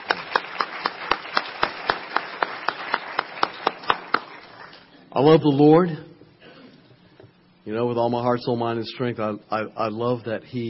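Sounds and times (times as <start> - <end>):
audience clapping: 0.0 - 4.9
speech: 5.2 - 6.1, 7.7 - 10.6.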